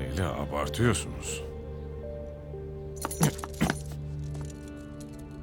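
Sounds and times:
speech: 0.1s - 1.5s
keys jingling as they are handed over: 3.0s - 5.4s.

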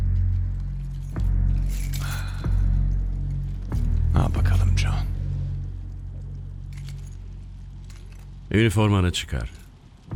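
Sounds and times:
bunch of keys jangling: 0.6s - 4.1s, 6.6s - 8.5s
speech: 4.2s - 5.2s, 8.5s - 9.6s.

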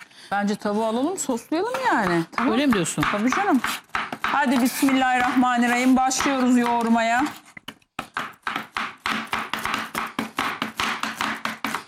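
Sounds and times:
speech: 0.3s - 7.4s
knife chopping on a board: 1.6s - 11.8s.

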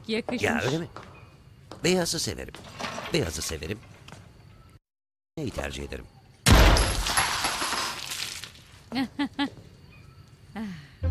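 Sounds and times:
speech: 0.1s - 1.1s, 1.8s - 3.9s, 5.4s - 6.2s, 8.9s - 9.6s, 10.6s - 11.0s
gunshot: 6.5s - 7.1s.

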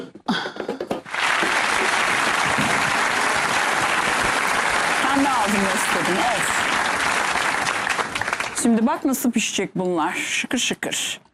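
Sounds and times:
applause: 1.0s - 9.2s
speech: 5.2s - 6.6s, 8.6s - 11.3s.

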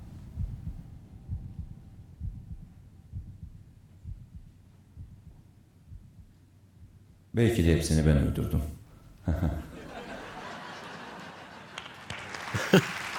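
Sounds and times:
heartbeat: 0.0s - 7.4s
speech: 7.4s - 9.6s
laughter: 9.2s - 13.1s.

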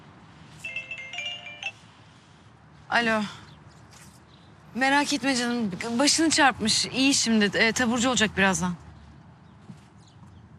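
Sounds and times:
mobile phone ringtone for an incoming call: 0.6s - 1.9s
speech: 2.9s - 3.4s, 4.8s - 8.8s.

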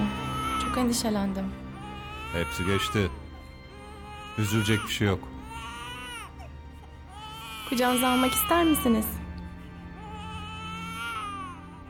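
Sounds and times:
newborn baby crying: 0.0s - 9.2s, 9.9s - 11.8s
speech: 0.8s - 1.6s, 2.3s - 3.2s, 4.4s - 5.3s, 7.7s - 9.2s.

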